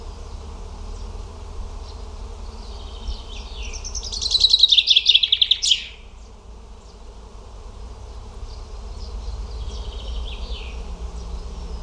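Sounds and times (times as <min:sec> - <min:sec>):
bird song of quick repeated high chirping notes: 0:02.6 - 0:06.2, 0:08.5 - 0:11.8.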